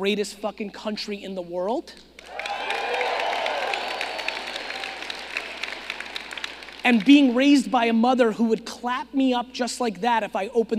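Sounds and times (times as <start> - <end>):
speech: 0.0 - 2.5, 6.8 - 10.7
excited voices cheering: 2.2 - 5.9
crowd clapping: 2.2 - 7.7.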